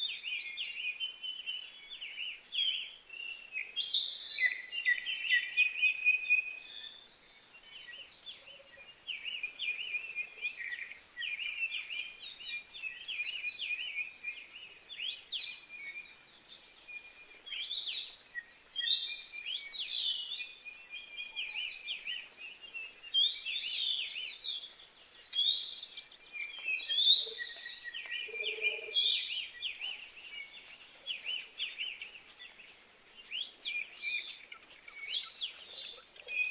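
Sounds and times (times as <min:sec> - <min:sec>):
native birds soundscape: 0:00.0 - 0:36.4.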